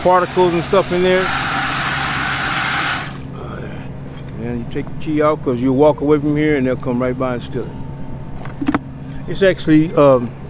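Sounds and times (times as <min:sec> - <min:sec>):
speech: 0:00.0 - 0:01.4, 0:04.6 - 0:07.8, 0:09.3 - 0:10.4
water gushing from a utility truck's tap into a clear container: 0:00.0 - 0:03.2.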